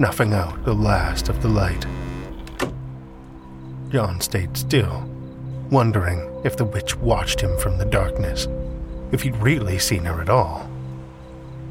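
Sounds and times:
speech: 0.0 - 2.7, 3.9 - 10.7
cellar door creaking closed: 0.0 - 3.0.

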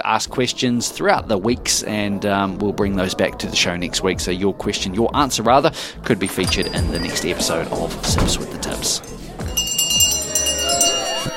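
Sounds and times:
speech: 0.1 - 9.7
crowd chatter: 0.9 - 11.3
last call bell ringing: 6.3 - 11.3.

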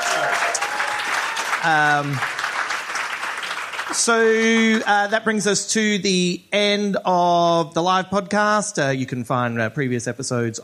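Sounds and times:
cheer or whoop: 0.0 - 1.8
crowd applause: 0.0 - 4.9
speech: 1.6 - 2.4, 3.9 - 10.6.

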